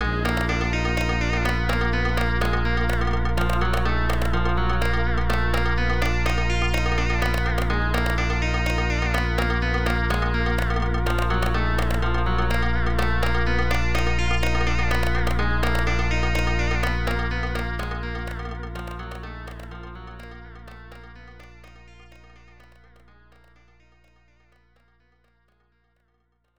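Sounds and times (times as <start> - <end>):
sitar music: 0.0 - 22.9.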